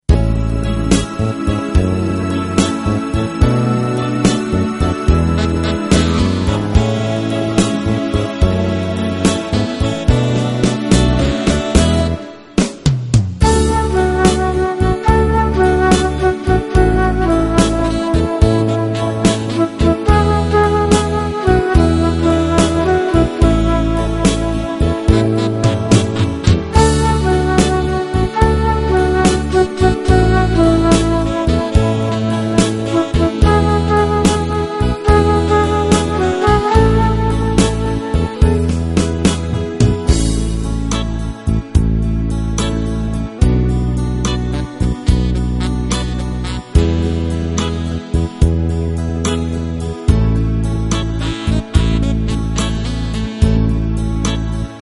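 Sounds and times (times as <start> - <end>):
instrumental music: 0.0 - 54.8.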